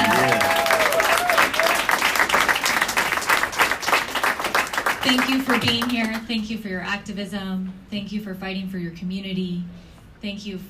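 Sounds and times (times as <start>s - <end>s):
audience applause for a community activist at an activism gathering: 0.0s - 6.2s
speech: 5.1s - 10.6s.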